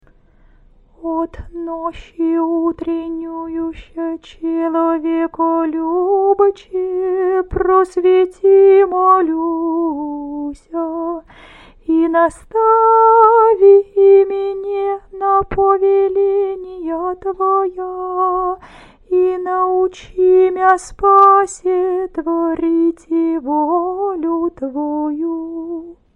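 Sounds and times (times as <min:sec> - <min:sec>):
canon hirmos singing: 0:01.0 - 0:11.2, 0:11.9 - 0:26.0.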